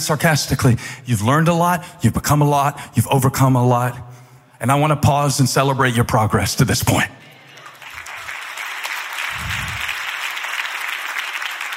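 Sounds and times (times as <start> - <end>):
speech: 0.0 - 7.2
hesitant clapping from audience: 7.6 - 11.7.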